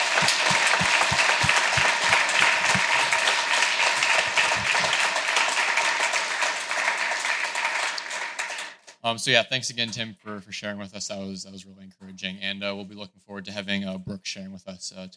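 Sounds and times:
applause: 0:00.0 - 0:09.0
speech: 0:09.1 - 0:15.1.

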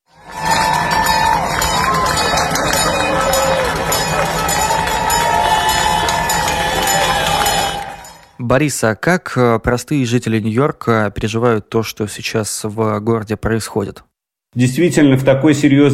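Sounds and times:
passersby applauding doctors on a street: 0:00.1 - 0:08.3
speech: 0:08.5 - 0:15.9.

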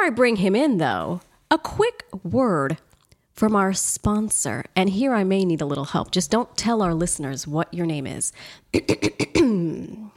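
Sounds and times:
speech: 0:00.0 - 0:10.1
throat clearing: 0:08.7 - 0:10.1.

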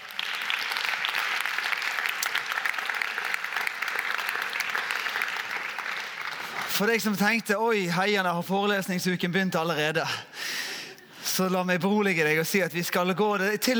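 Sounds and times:
audience applause: 0:00.0 - 0:07.5
speech: 0:06.8 - 0:10.3, 0:11.4 - 0:13.7.

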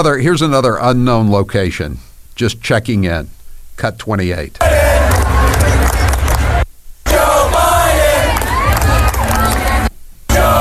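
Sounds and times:
speech: 0:00.0 - 0:04.7
stadium crowd cheering: 0:04.6 - 0:10.5.

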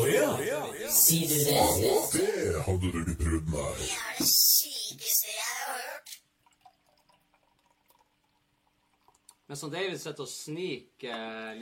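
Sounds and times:
speech: 0:00.4 - 0:06.1, 0:09.5 - 0:11.5
mixer poured into a glass: 0:06.2 - 0:09.6.

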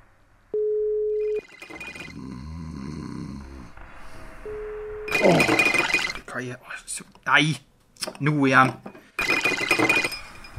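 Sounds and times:
phone call tone beep: 0:00.6 - 0:02.2, 0:04.4 - 0:06.2
speech: 0:06.4 - 0:08.9.

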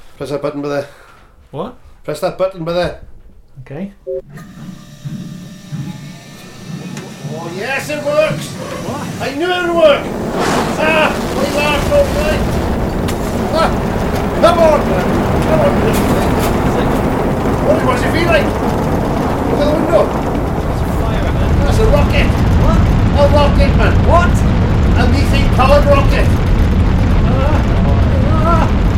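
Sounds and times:
speech: 0:00.2 - 0:04.7, 0:07.3 - 0:12.6, 0:13.5 - 0:16.6, 0:17.6 - 0:18.9, 0:19.5 - 0:20.3, 0:21.7 - 0:26.5
methane-powered rocket launching: 0:06.5 - 0:28.9
excited people talking and shouting: 0:07.2 - 0:28.9.

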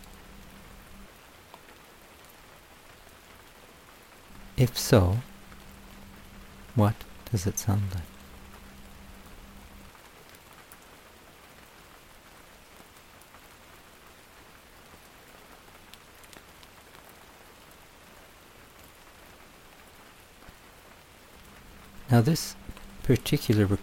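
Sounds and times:
steady dense rain pattering on a surface: 0:00.0 - 0:23.8
speech: 0:04.6 - 0:05.3, 0:06.8 - 0:08.1, 0:22.2 - 0:23.8.

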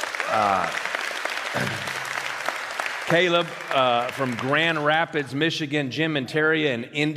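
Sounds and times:
audience applause welcoming online viewers: 0:00.0 - 0:05.4
speech: 0:00.3 - 0:00.9, 0:01.5 - 0:02.0, 0:03.1 - 0:07.1.

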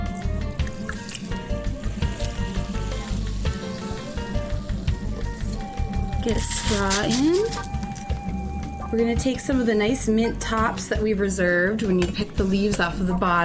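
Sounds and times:
soda poured over ice in a glass: 0:00.2 - 0:08.1
speech: 0:06.3 - 0:07.7, 0:08.9 - 0:13.4.

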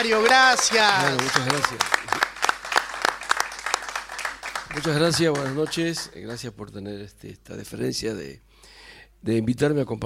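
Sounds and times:
speech: 0:00.0 - 0:02.3, 0:04.7 - 0:10.0
audience applause for a guest: 0:00.0 - 0:06.1.

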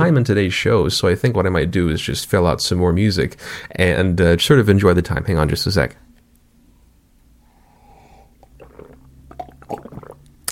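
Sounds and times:
speech: 0:00.1 - 0:06.1
person sipping coffee: 0:07.5 - 0:10.3.

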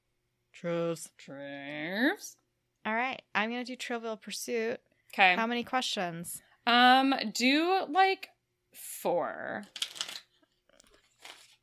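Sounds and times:
speech: 0:00.6 - 0:09.8
deck of cards being shuffled: 0:09.6 - 0:11.6.

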